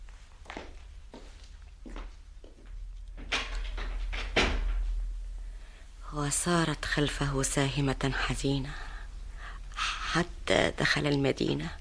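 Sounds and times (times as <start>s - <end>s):
footsteps: 0.0s - 5.0s
door closing: 3.2s - 5.0s
speech: 6.1s - 8.8s, 10.1s - 11.8s.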